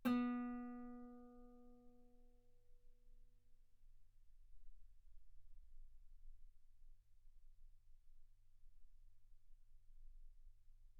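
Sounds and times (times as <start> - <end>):
guitar note B3: 0.0 - 1.5.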